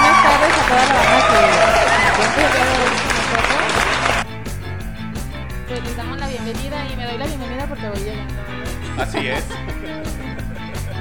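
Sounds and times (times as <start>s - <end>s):
applause: 0.0s - 4.2s
laughter: 0.0s - 4.2s, 8.6s - 10.9s
speech: 9.0s - 9.8s.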